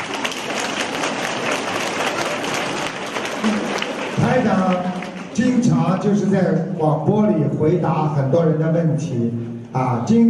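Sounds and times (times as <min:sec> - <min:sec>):
audience applause: 0:00.0 - 0:05.7
speech: 0:04.4 - 0:10.2.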